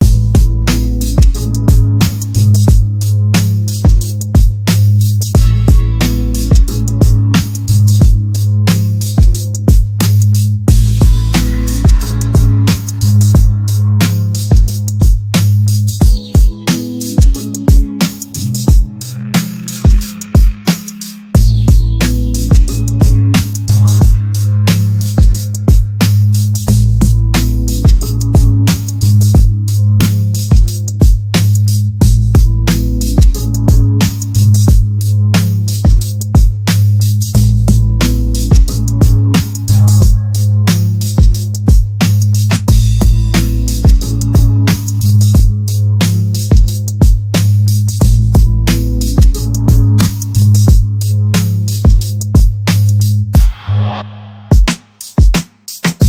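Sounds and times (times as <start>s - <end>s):
mellow chillhop music: 0.0s - 56.0s.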